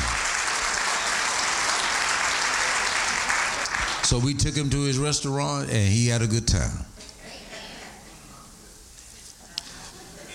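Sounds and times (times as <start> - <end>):
audience clapping for a father's 84th birthday: 0.0 - 4.2
speech: 4.1 - 6.9.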